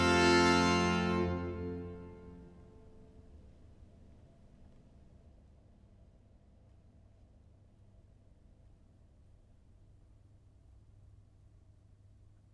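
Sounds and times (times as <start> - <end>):
viol consort of six playing an air in F major: 0.0 - 2.7.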